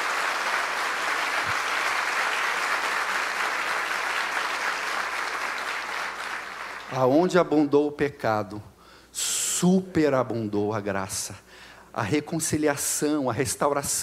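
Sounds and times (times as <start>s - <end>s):
audience applause: 0.0s - 7.0s
speech: 6.9s - 14.0s.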